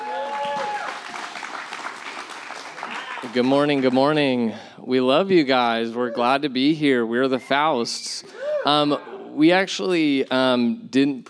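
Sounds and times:
church congregation applauding: 0:00.0 - 0:04.3
speech: 0:03.2 - 0:11.2.

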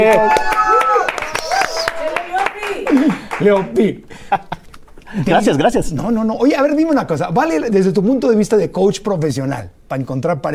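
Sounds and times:
speech: 0:00.0 - 0:00.5, 0:03.4 - 0:10.5
loud scattered hand claps: 0:00.0 - 0:03.9.

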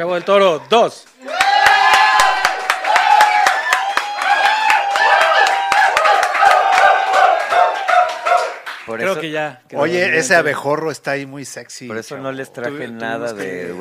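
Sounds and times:
speech: 0:00.0 - 0:01.2, 0:08.9 - 0:13.8
audience applause and cheering: 0:01.2 - 0:08.9.

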